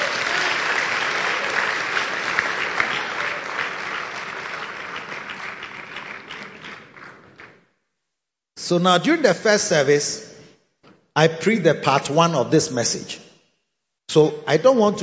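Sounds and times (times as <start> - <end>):
crowd clapping hands: 0.0 - 7.6
speech: 8.7 - 10.2, 11.2 - 13.2, 14.1 - 15.0.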